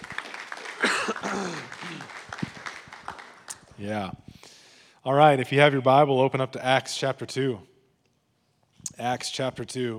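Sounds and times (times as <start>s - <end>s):
audience hand clapping: 0.0s - 3.8s
speech: 1.3s - 2.2s, 3.8s - 4.2s, 5.0s - 7.7s, 9.0s - 9.9s.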